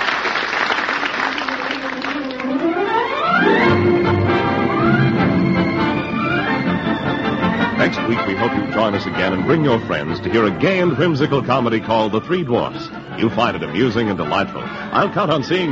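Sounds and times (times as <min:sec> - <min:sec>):
theatre audience ovation for actors taking bows at a small theater off Times Square: 0:00.0 - 0:04.3
music climbing steadily upward in pitch: 0:01.2 - 0:15.7
speech: 0:08.7 - 0:15.7.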